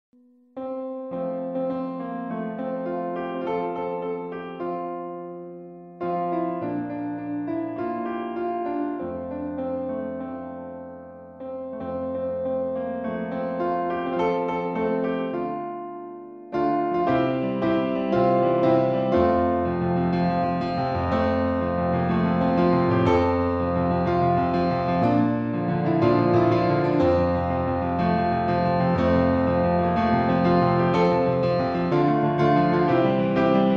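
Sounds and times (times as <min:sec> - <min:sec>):
piano: 0:00.2 - 0:33.7.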